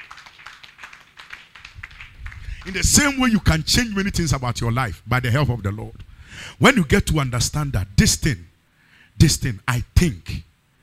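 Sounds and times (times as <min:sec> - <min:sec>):
clapping: 0:00.0 - 0:04.1
speech: 0:02.6 - 0:08.5, 0:09.2 - 0:10.5.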